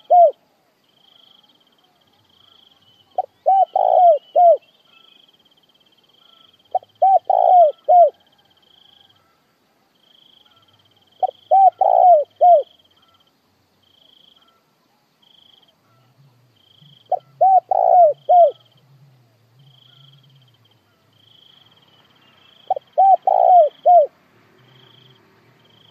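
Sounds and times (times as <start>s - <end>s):
spotted dove cooing: 0.0s - 0.4s, 3.1s - 4.7s, 6.2s - 8.4s, 11.2s - 13.2s, 15.9s - 20.3s, 22.6s - 24.2s
cricket trill: 0.0s - 9.4s, 10.0s - 14.6s, 15.2s - 18.9s, 19.6s - 25.8s.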